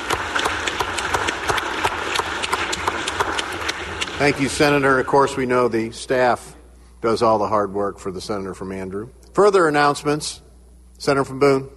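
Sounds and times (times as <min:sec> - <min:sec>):
applause in the chamber: 0:00.0 - 0:05.1
speech: 0:04.2 - 0:10.4, 0:11.0 - 0:11.7.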